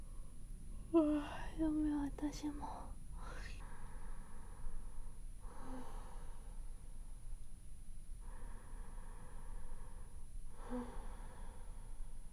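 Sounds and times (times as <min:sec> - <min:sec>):
person speaking softly, goodnight voice: 0:00.9 - 0:03.6
person breathing in sleep: 0:03.3 - 0:07.1, 0:08.2 - 0:12.3.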